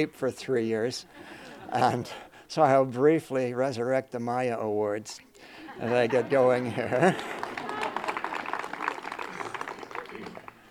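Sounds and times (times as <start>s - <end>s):
speech: 0.0s - 7.4s
laughter: 1.2s - 2.2s, 5.5s - 10.5s
audience applause: 5.9s - 10.6s.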